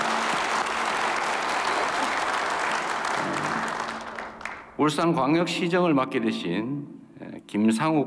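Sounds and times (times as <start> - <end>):
audience applause: 0.0 - 4.8
speech: 4.8 - 8.0.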